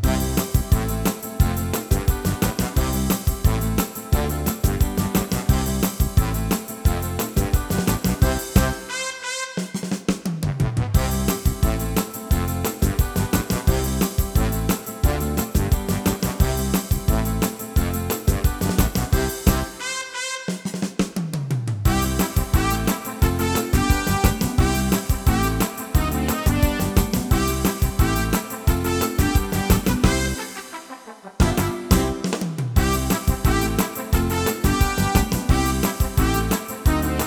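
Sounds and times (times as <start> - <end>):
happy music: 0.1 - 20.9, 21.9 - 37.2.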